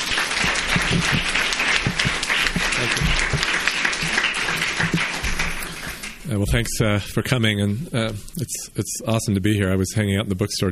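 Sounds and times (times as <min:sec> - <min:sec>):
audience applause welcoming authors David and Nick Sheff at a bookstore event: 0:00.0 - 0:06.4
speech: 0:00.9 - 0:01.4, 0:06.3 - 0:10.6.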